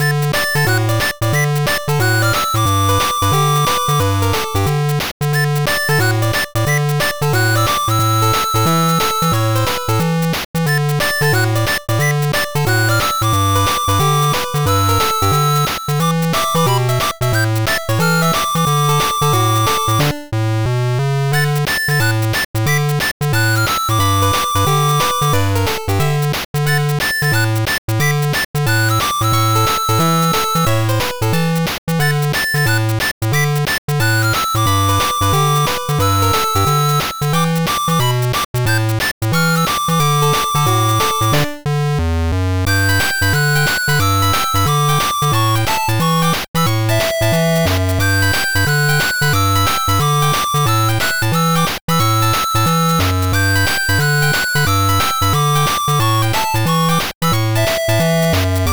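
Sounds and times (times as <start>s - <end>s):
8-bit music: 0.0s - 20.4s, 21.2s - 58.7s.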